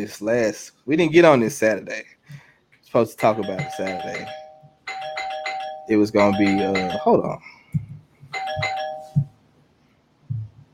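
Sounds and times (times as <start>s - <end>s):
speech: 0.0s - 2.2s, 2.9s - 4.4s, 5.9s - 7.8s
doorbell ringing: 3.2s - 7.2s, 8.3s - 9.3s.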